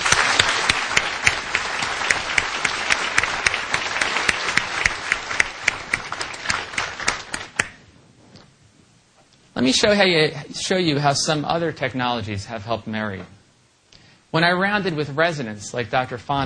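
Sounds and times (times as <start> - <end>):
round of applause: 0.0 - 7.8
speech: 9.6 - 13.4, 14.3 - 16.4.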